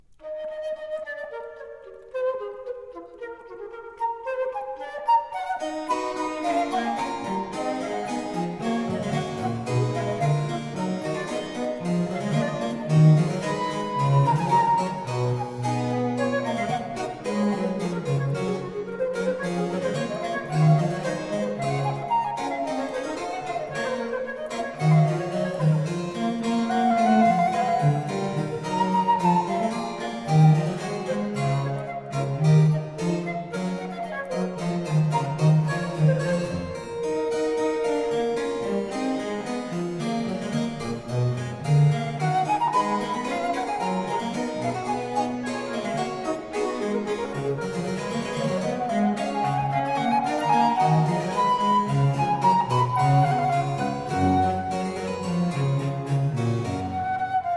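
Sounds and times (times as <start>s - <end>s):
flute sonata in E minor with continuo: 0.0s - 57.5s.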